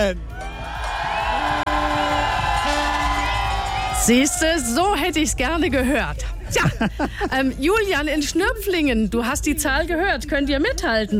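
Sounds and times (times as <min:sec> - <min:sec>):
speech: 0:00.0 - 0:00.3, 0:04.0 - 0:11.1
crowd cheering with whoops and shouts: 0:00.0 - 0:05.4.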